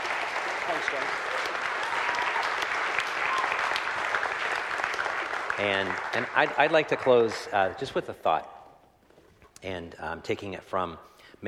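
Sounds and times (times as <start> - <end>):
crowd applause: 0.0 - 8.0
speech: 0.8 - 1.4, 5.6 - 8.5, 9.6 - 11.4.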